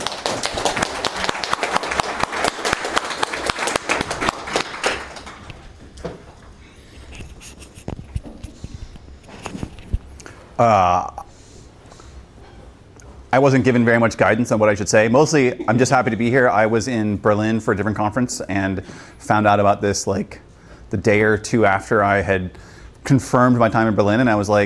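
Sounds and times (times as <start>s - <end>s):
audience applause for a guest speaker: 0.0s - 5.8s
speech: 10.6s - 11.1s, 13.4s - 24.6s.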